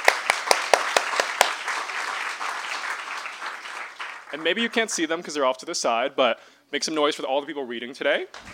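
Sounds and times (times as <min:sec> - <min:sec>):
audience round of applause: 0:00.0 - 0:04.9
speech: 0:04.3 - 0:08.5.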